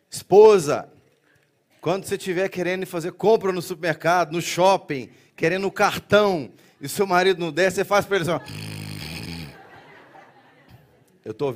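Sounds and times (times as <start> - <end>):
speech: 0.3 - 1.0, 1.8 - 8.8, 11.2 - 11.5
laughter: 6.7 - 11.2
voice imitating an exaggerated sniff: 8.4 - 9.6.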